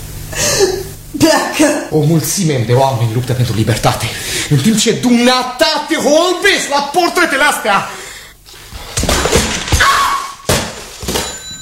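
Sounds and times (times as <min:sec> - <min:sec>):
speech: 0:01.2 - 0:08.0
telephone being smashed with heavy crashing blows: 0:09.0 - 0:11.6.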